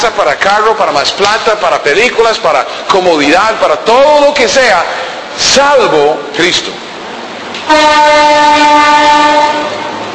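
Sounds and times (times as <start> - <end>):
speech: 0.0 - 6.8, 7.7 - 9.8
train passing: 0.0 - 10.1
train horn: 7.7 - 10.1.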